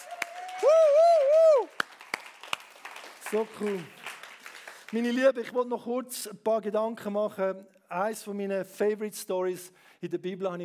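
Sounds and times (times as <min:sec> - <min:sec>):
audience applause: 0:00.0 - 0:05.2
speech: 0:03.3 - 0:04.0, 0:04.9 - 0:10.6.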